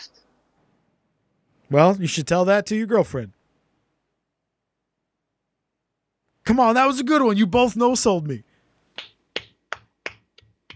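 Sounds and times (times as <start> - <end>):
speech: 1.7 - 3.4, 6.5 - 9.1
soft golf clap: 9.0 - 10.7.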